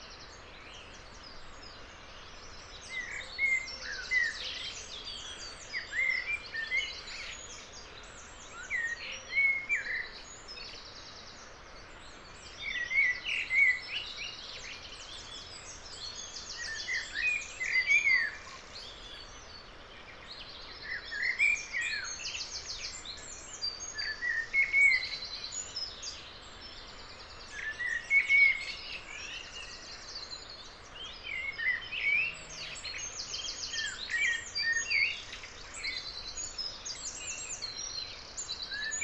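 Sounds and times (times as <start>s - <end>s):
dawn birdsong in a leafy ravine: 0.0s - 39.0s.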